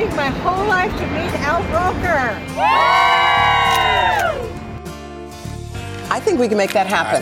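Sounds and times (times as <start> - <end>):
speech: 0.1 - 3.1, 6.3 - 7.2
outdoor holiday crowd cheering and whooping: 2.5 - 4.6.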